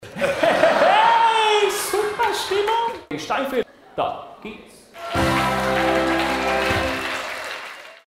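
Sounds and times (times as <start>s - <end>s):
laughter: 0.0s - 2.4s
party music: 5.0s - 7.4s.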